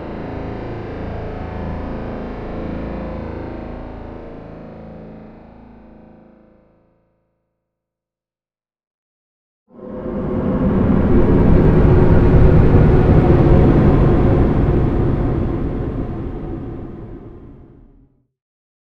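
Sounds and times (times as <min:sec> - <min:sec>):
sweeping: 0:09.8 - 0:18.0.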